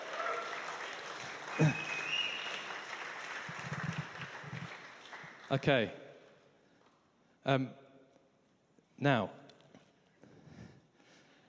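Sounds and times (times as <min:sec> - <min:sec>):
audience whooping and cheering: 0:00.0 - 0:04.8
speech: 0:01.6 - 0:01.8, 0:05.5 - 0:06.0, 0:07.4 - 0:07.8, 0:09.0 - 0:09.4.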